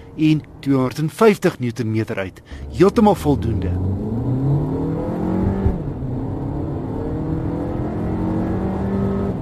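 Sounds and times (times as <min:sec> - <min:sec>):
speech: 0:00.2 - 0:04.0
turbo petrol car engine accelerating: 0:02.6 - 0:09.4.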